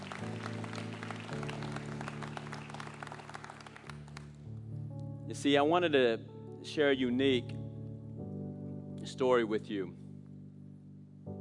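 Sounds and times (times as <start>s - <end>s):
crowd clapping: 0.0s - 4.4s
sustained low keyboard or organ chords: 0.0s - 11.3s
speech: 5.3s - 7.6s, 9.1s - 10.0s.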